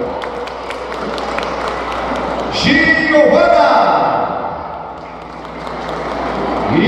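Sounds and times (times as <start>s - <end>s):
audience applause: 0.0s - 3.0s, 4.9s - 6.7s
speech: 2.6s - 3.8s.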